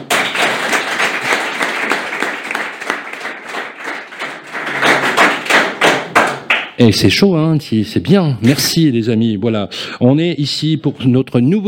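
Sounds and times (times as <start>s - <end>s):
audience applause: 0.0s - 6.6s
speech: 6.8s - 11.6s.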